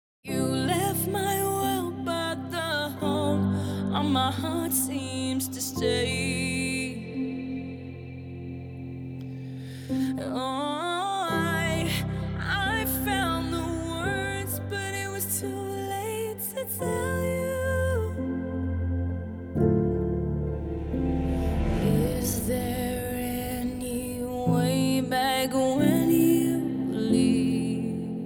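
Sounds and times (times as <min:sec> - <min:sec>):
music: 0:00.2 - 0:28.2.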